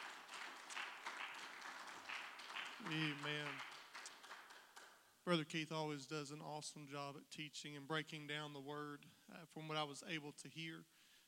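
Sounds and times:
audience clapping hands: 0.0s - 5.0s
speech: 2.8s - 3.7s, 5.2s - 11.0s.

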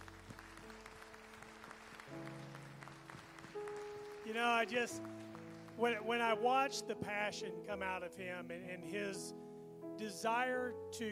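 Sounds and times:
audience applause: 0.0s - 6.0s
organ or keyboard chords: 0.0s - 11.0s
speech: 4.3s - 5.2s, 5.8s - 9.4s, 10.0s - 11.0s.

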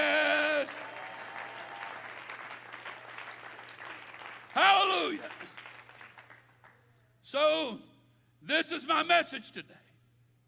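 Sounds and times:
audience clapping hands: 0.0s - 6.9s
speech: 7.3s - 7.9s, 8.5s - 9.8s.

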